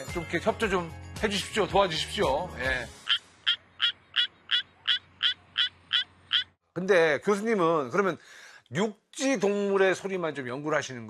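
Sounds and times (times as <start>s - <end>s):
speech: 0.2s - 3.0s, 6.8s - 11.0s
Suwon tree frog calling: 3.0s - 6.6s.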